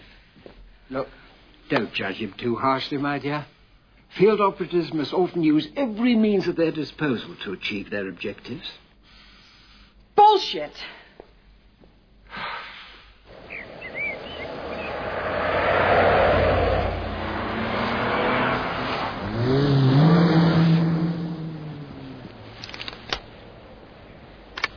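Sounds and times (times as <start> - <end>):
speech: 0.9 - 8.8, 10.4 - 11.0
car engines of several vehicles revving as they pull away: 13.3 - 22.6.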